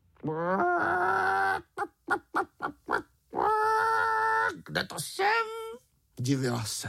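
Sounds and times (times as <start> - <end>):
speech: 0.2 - 1.7, 4.8 - 5.5, 6.2 - 6.8
hen clucking: 0.2 - 4.6.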